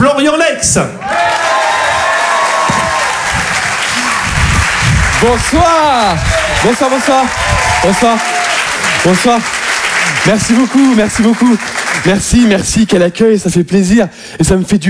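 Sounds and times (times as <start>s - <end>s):
speech: 0.0s - 1.1s, 5.2s - 8.3s, 9.0s - 9.6s, 10.2s - 14.8s
comedy club audience applauding and cheering a comedian: 1.0s - 12.6s.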